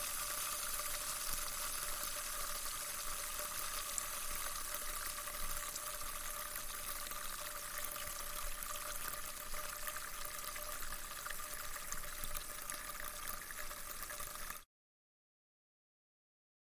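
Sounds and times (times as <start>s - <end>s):
fizzing swirling bubbles: 0.0s - 14.7s.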